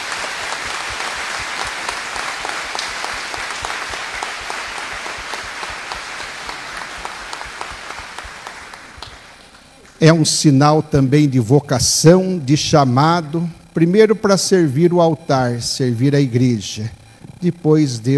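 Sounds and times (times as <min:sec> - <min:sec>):
round of applause: 0:00.0 - 0:10.0
speech: 0:10.0 - 0:18.1.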